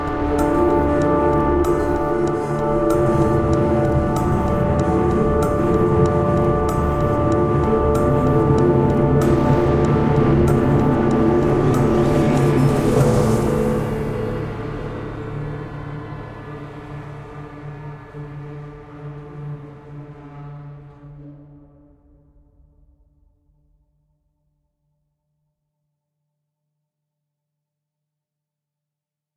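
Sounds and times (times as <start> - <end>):
dissonant music: 0.0 - 21.6.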